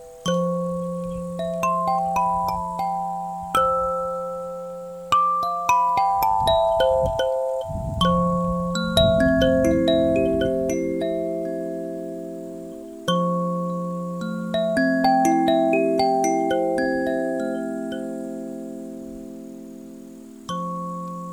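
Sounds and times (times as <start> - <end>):
21-tone F major kalimbas: 0.0 - 21.3.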